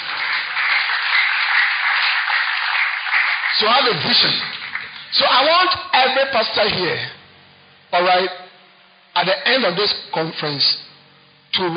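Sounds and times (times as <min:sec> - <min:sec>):
audience clapping hands: 0:00.0 - 0:05.3
speech: 0:03.6 - 0:07.2, 0:07.9 - 0:08.4, 0:09.2 - 0:10.8, 0:11.5 - 0:11.7.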